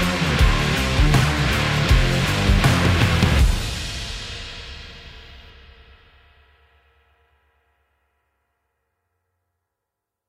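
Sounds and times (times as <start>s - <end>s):
action sport promo rock trailer music: 0.0s - 5.4s.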